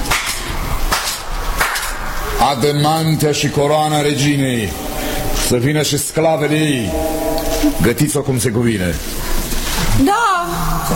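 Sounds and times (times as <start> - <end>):
steady hiss: 0.0 - 10.9
hand clapping: 0.1 - 2.0
speech: 2.4 - 9.2, 10.0 - 10.9.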